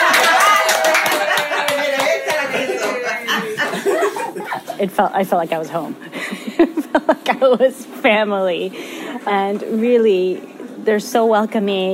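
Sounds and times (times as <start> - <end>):
small group applauding at a pan dulce bread-making gathering: 0.0 - 3.6
people chuckling and laughing: 0.0 - 5.0, 6.1 - 7.7
speech: 4.8 - 11.9.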